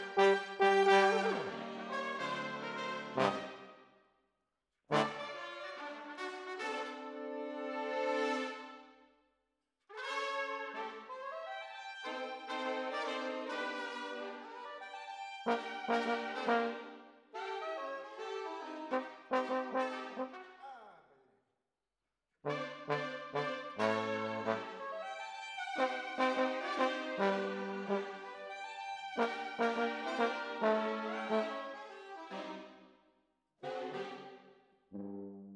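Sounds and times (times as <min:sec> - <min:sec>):
trombones: 0:00.0 - 0:03.8, 0:04.9 - 0:08.8, 0:10.0 - 0:20.8, 0:22.5 - 0:28.6, 0:29.2 - 0:32.7.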